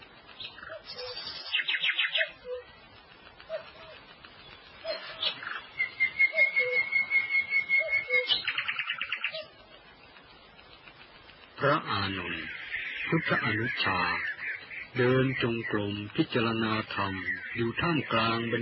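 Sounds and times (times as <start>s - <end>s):
small birds chirping and trilling: 0.0s - 18.5s
soft hiss: 0.0s - 18.5s
thin whistle: 5.8s - 8.4s
speech: 13.2s - 14.3s, 15.0s - 18.5s.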